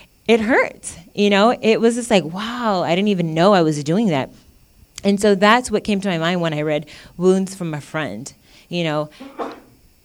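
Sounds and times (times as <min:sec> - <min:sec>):
speech: 0:00.3 - 0:04.4, 0:05.0 - 0:09.5
sneeze: 0:09.2 - 0:09.7.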